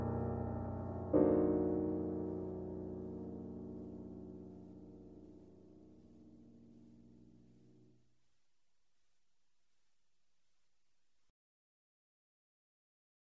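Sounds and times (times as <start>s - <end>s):
modern solo piano music: 0.0s - 8.1s.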